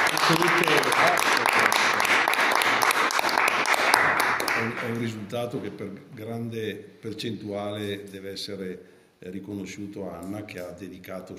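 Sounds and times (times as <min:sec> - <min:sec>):
audience applause: 0:00.0 - 0:05.1
speech: 0:00.3 - 0:01.0, 0:04.8 - 0:11.3.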